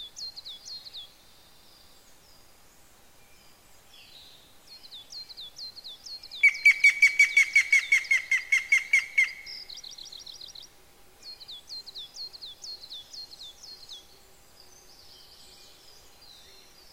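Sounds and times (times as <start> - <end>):
yamagera bird calling: 6.4 - 9.8.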